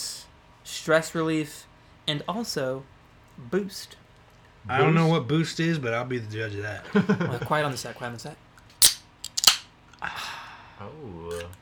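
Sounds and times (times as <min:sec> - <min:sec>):
speech: 0:00.8 - 0:04.0, 0:04.6 - 0:08.5, 0:10.8 - 0:11.6
carbonated drink can cracking open: 0:08.8 - 0:09.7.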